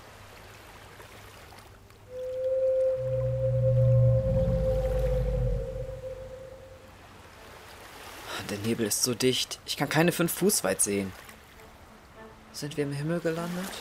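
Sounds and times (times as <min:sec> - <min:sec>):
monster-like sound over the sea: 0:02.1 - 0:06.9
speech: 0:08.5 - 0:11.2, 0:12.6 - 0:13.7.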